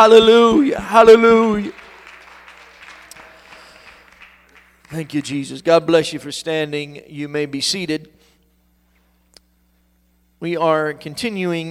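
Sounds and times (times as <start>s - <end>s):
speech: 0.0s - 1.8s, 4.9s - 8.2s, 10.4s - 11.6s
church congregation applauding in praise of the Lord: 0.9s - 6.0s.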